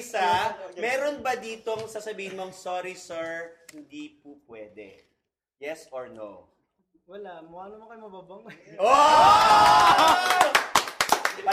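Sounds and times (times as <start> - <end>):
speech: 0.0 - 6.5, 7.1 - 10.7
scattered hand claps from a few people: 9.4 - 11.5.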